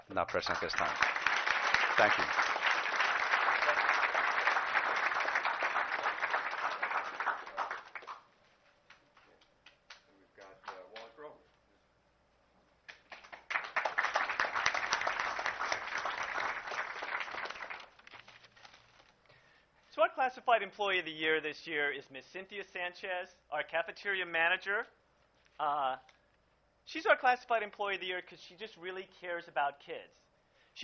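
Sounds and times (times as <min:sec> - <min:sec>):
speech: 0:00.1 - 0:01.2, 0:02.0 - 0:02.6, 0:20.7 - 0:25.0, 0:25.6 - 0:26.1, 0:26.9 - 0:30.8
audience applause: 0:00.3 - 0:08.3, 0:12.9 - 0:18.1.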